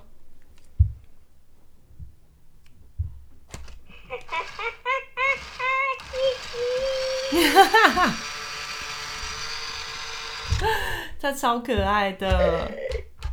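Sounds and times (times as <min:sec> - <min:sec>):
laughter: 0:03.9 - 0:09.2, 0:10.5 - 0:13.1
toy making chattering gibberish sounds: 0:04.0 - 0:09.5, 0:12.2 - 0:13.2
speech: 0:07.3 - 0:08.3, 0:11.2 - 0:12.8.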